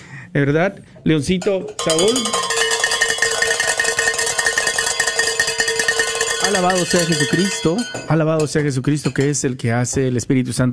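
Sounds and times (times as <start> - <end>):
speech: 0.3 - 2.5, 6.5 - 10.7
bells ringing in celebration: 1.8 - 8.6.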